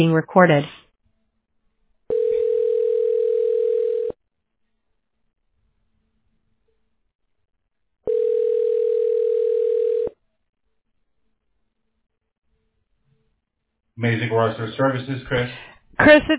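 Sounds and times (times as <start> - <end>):
speech: 0.0 - 0.8, 14.0 - 16.3
telephone ringing tone on a call: 2.1 - 4.2, 8.1 - 10.2.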